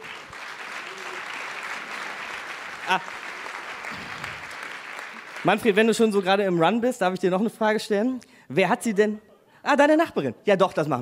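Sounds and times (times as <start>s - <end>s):
audience applause: 0.0s - 6.3s
speech: 2.9s - 3.2s, 5.4s - 11.0s.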